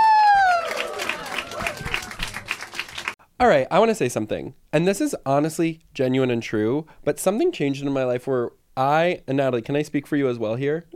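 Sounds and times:
audience clapping and cheering: 0:00.0 - 0:03.2
speech: 0:03.4 - 0:10.9.

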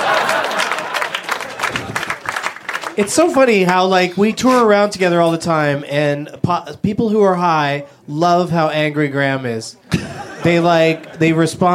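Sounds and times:
laughter: 0:00.0 - 0:02.4, 0:09.8 - 0:11.7
single person clapping as a comedian is welcomed: 0:00.2 - 0:03.8
speech: 0:03.0 - 0:09.8, 0:10.4 - 0:11.7.

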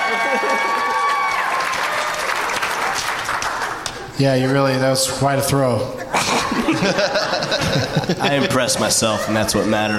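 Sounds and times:
laughter: 0:00.0 - 0:00.9, 0:06.0 - 0:09.9
audience applause: 0:00.0 - 0:04.1
speech: 0:04.2 - 0:06.0, 0:06.6 - 0:09.9.

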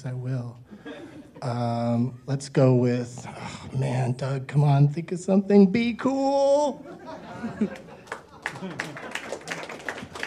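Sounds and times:
speech: 0:00.0 - 0:00.8, 0:01.4 - 0:07.8
laughter: 0:00.8 - 0:02.4, 0:06.8 - 0:10.2
audience applause: 0:07.8 - 0:10.2.

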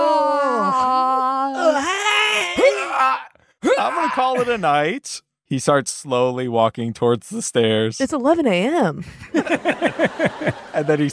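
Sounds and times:
person yawning: 0:00.0 - 0:04.6
speech: 0:03.1 - 0:11.1
laughter: 0:03.6 - 0:04.9, 0:09.0 - 0:11.1.

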